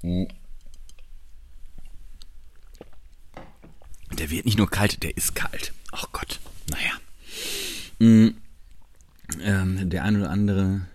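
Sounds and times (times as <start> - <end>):
speech: 0.0 - 0.4, 4.2 - 6.9, 8.0 - 8.4, 9.4 - 10.9
person sipping cold coffee: 1.8 - 3.2, 3.8 - 4.2, 7.5 - 9.4.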